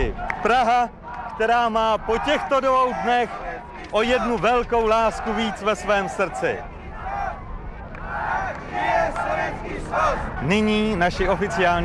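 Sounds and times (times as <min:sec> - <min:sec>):
crowd chanting a name: 0:00.0 - 0:10.5
speech: 0:00.1 - 0:06.7, 0:08.7 - 0:11.8.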